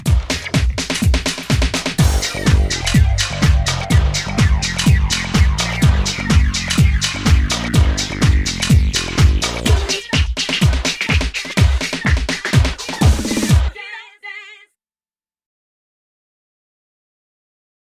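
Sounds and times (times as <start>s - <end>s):
house music on a synthesizer: 0.0s - 13.8s.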